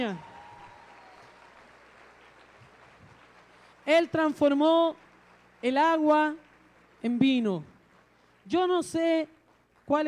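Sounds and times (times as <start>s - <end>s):
speech: 0.0s - 0.3s, 3.9s - 5.0s, 5.6s - 6.4s, 7.0s - 7.7s, 8.5s - 10.0s
audience applause: 0.0s - 8.5s.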